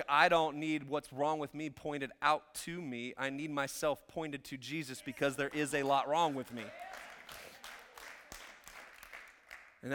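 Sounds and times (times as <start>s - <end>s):
speech: 0.0s - 7.4s
few people clapping: 5.4s - 9.9s.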